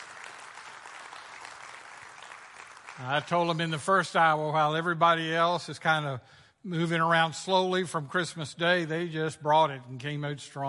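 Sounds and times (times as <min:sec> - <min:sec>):
audience applause: 0:00.0 - 0:03.6
speech: 0:03.0 - 0:10.6.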